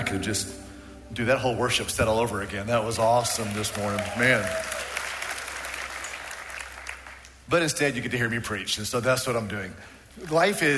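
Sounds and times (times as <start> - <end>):
speech: 0.0 - 4.9, 7.5 - 10.7
people applauding: 3.0 - 7.5, 10.2 - 10.7.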